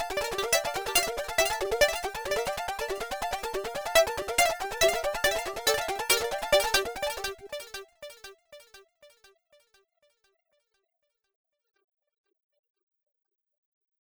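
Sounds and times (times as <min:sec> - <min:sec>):
electronic dance music: 0:00.0 - 0:07.3.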